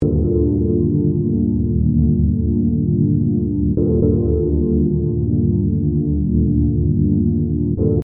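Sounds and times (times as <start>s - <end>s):
chords: 0.0s - 8.0s.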